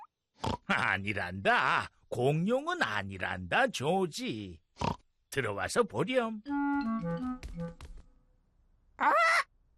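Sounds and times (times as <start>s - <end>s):
speech: 0.7s - 7.9s
parrot squawking: 9.0s - 9.5s.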